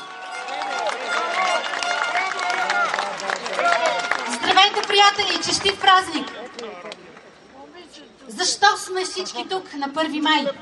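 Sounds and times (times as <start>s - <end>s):
large outdoor crowd cheering and clapping: 0.0s - 7.3s
speech: 4.9s - 6.7s, 8.4s - 10.5s.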